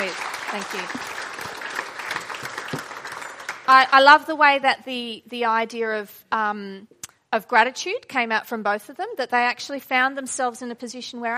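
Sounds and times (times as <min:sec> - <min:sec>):
audience applause: 0:00.0 - 0:03.8
speech: 0:00.1 - 0:01.1, 0:03.7 - 0:11.3.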